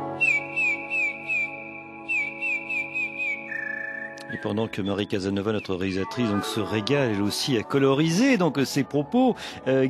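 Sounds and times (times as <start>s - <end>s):
song thrush singing: 0.2s - 6.7s
speech: 4.3s - 9.8s.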